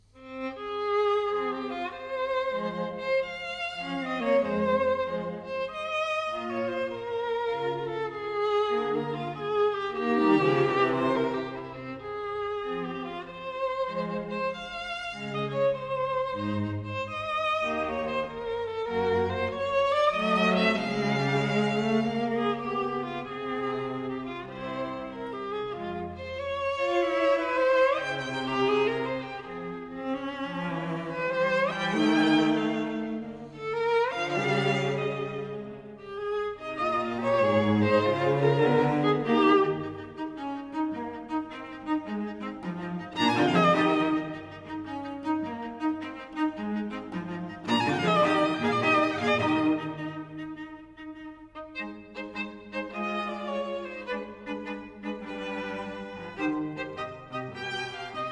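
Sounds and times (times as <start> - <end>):
string trio playing: 0.0 - 58.3.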